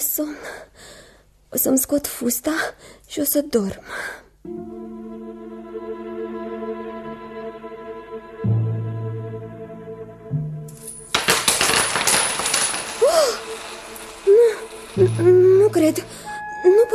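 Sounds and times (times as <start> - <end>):
speech: 0.2 - 5.2, 15.0 - 16.9
coins falling: 10.7 - 16.4.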